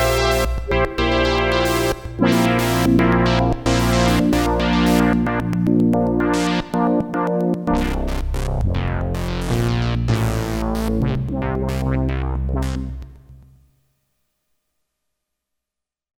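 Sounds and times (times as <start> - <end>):
Roland Jupiter-8 sample and hold brass synthesizer patch: 0.0 - 13.6.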